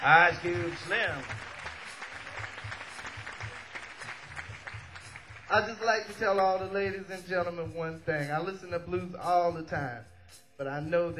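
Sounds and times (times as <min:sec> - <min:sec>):
speech: 0:00.0 - 0:01.5, 0:05.5 - 0:11.1
audience applause: 0:00.0 - 0:06.1.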